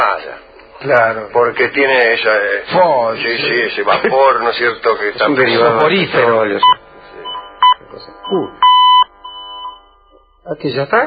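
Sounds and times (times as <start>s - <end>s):
speech: 0.1s - 6.8s, 7.9s - 8.7s, 10.4s - 11.0s
cleaning machine beeping when cycle finishes: 6.5s - 11.0s.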